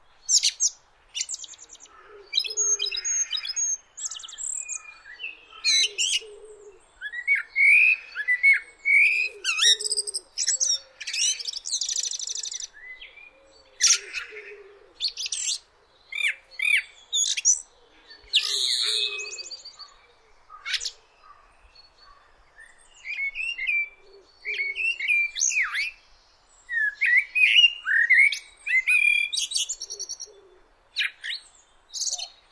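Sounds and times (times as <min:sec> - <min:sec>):
common blackbird singing: 0:00.0 - 0:32.4.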